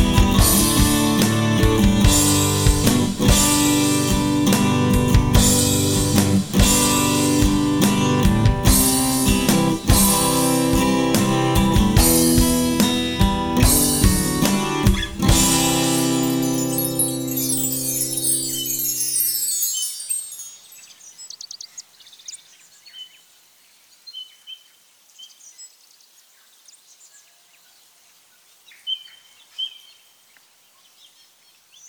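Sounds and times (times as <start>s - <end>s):
ambient acoustic guitar: 0.0s - 20.1s.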